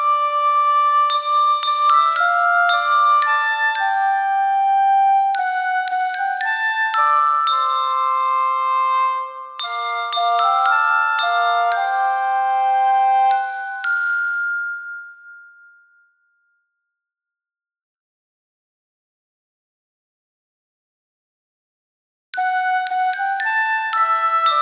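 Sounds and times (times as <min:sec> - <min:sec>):
puzzled quirky classical underscore: 0:00.0 - 0:13.8, 0:22.4 - 0:24.6.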